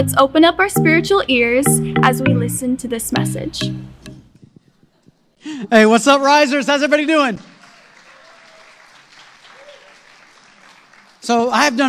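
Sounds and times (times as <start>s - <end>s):
speech: 0.0s - 4.0s, 5.4s - 7.5s, 11.2s - 11.8s
audience clapping: 6.8s - 11.8s.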